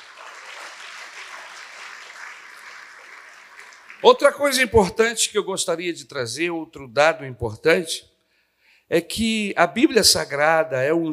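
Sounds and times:
audience applause: 0.0 - 4.6
speech: 4.0 - 8.1, 8.9 - 11.1.

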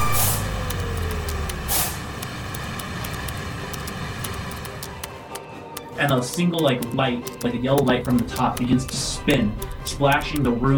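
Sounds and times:
alarm sound effect hissing blasts: 0.0 - 4.6
steady low mechanical hum: 0.0 - 5.7
speech: 6.0 - 10.7.

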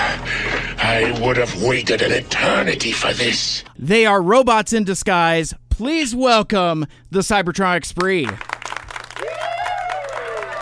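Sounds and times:
speech: 0.9 - 8.5
live studio audience cheering and applauding: 8.4 - 10.6.

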